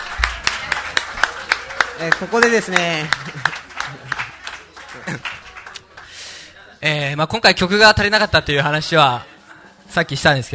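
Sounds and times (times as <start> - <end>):
hand clapping applause: 0.0 - 6.1
speech: 2.0 - 4.1, 6.8 - 9.3, 9.9 - 10.5.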